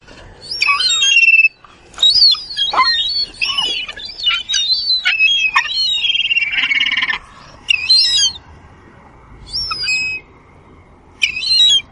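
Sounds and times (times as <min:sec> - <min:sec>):
gull giving descending cries in a harbor: 0:00.4 - 0:08.4, 0:09.5 - 0:10.3, 0:11.2 - 0:11.8.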